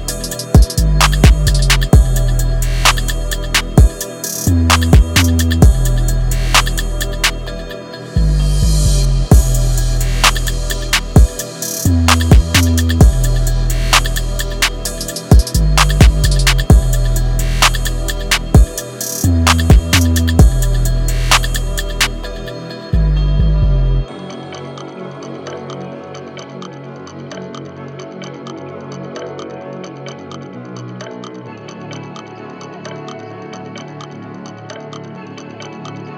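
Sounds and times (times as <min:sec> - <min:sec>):
trap beat: 0:00.0 - 0:24.1.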